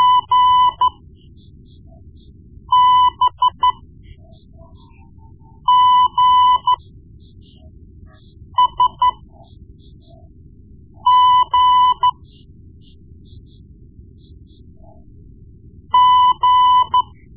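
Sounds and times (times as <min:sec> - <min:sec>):
morse code beeps: 0:00.0 - 0:01.0, 0:02.7 - 0:06.8, 0:07.4 - 0:10.2, 0:11.1 - 0:13.4, 0:16.0 - 0:17.3.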